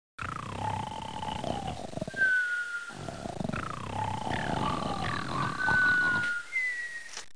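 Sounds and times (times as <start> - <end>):
person snoring: 0.2 - 2.3, 2.9 - 6.4.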